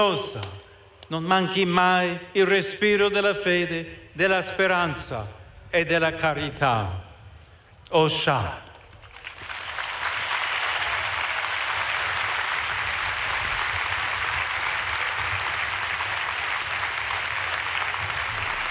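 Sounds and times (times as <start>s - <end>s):
speech: 0.0s - 7.0s, 7.9s - 8.6s
large crowd applauding in a stadium: 8.8s - 18.6s.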